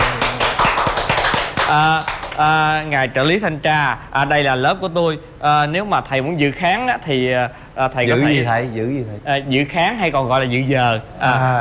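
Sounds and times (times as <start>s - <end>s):
hand claps in a classroom: 0.0s - 3.0s
speech: 1.7s - 11.5s.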